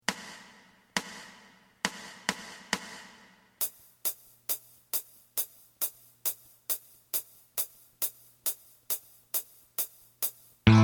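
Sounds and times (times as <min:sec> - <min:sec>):
drum: 0:00.0 - 0:10.7.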